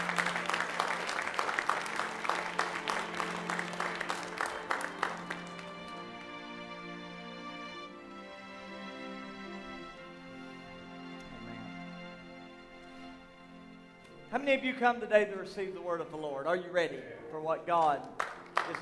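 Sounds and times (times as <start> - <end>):
audience clapping for the choir: 0.0 - 7.1, 17.8 - 18.8
speech: 14.3 - 18.8.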